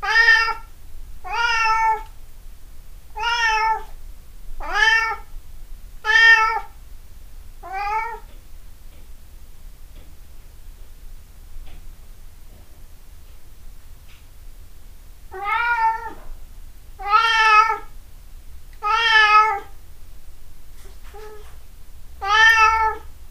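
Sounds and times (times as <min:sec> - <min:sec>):
cat meowing: 0:00.0 - 0:02.1, 0:03.2 - 0:03.9, 0:04.6 - 0:05.3, 0:06.0 - 0:06.7, 0:07.6 - 0:08.3, 0:15.3 - 0:16.2, 0:17.0 - 0:17.9, 0:18.8 - 0:19.7, 0:22.2 - 0:23.1.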